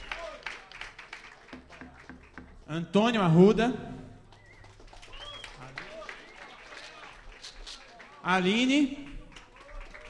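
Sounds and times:
faint scattered applause from a small audience at a DJ jam: 0.0s - 2.8s, 4.2s - 10.0s
speech: 2.7s - 4.0s, 8.3s - 9.0s
murmuring voices: 3.9s - 10.0s.

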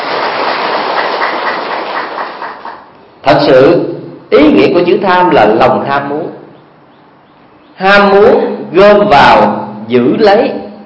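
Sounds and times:
audience applause: 0.0s - 2.9s
speech: 3.2s - 6.4s, 7.8s - 10.6s.

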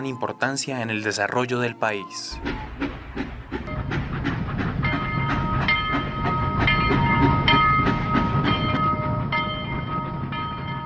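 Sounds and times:
speech: 0.0s - 3.3s
sustained metallic squealing of train: 2.0s - 9.2s
train wheels clicking over rail joints: 2.4s - 10.8s.

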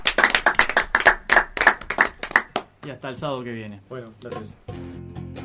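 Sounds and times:
crowd applause for a band: 0.0s - 2.7s
speech: 2.9s - 4.9s.

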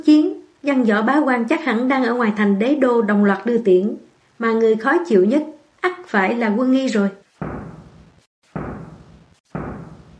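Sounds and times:
speech: 0.0s - 7.2s
heavy war drums booming outside palace gates as an army sets out: 7.4s - 10.1s.

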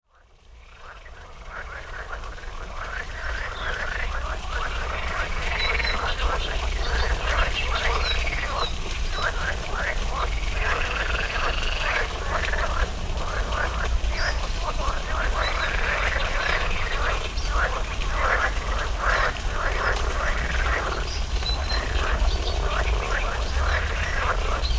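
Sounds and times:
frog chorus croaking: 0.2s - 24.7s.

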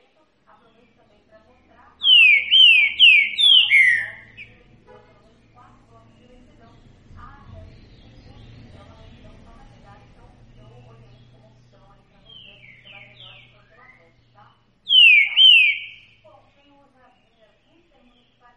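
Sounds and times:
green-winged saltator song of slurred whistles: 2.0s - 4.5s, 14.9s - 16.2s.

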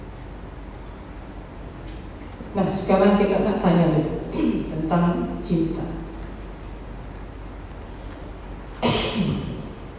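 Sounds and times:
speech: 2.5s - 6.0s
person coughing: 4.3s - 4.7s, 8.8s - 9.6s.

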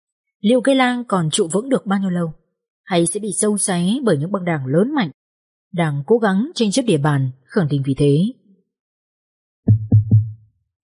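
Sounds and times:
speech: 0.4s - 8.4s
heavy knocking on a door: 9.7s - 10.4s.

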